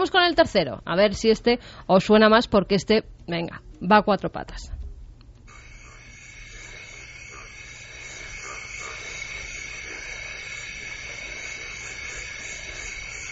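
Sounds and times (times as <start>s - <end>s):
speech: 0.0s - 4.8s
chorus of croaking frogs or toads: 5.4s - 13.3s
constant high-pitched buzz: 5.4s - 13.3s.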